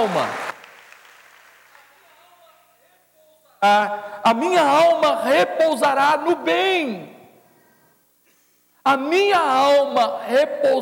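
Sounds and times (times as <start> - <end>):
speech: 0.0 - 0.4, 3.6 - 7.1, 8.8 - 10.7
audience applause: 0.0 - 2.0.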